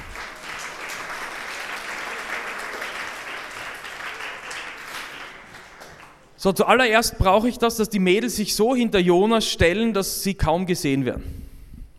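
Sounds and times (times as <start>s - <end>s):
crowd applause: 0.0s - 6.3s
speech: 6.4s - 11.4s.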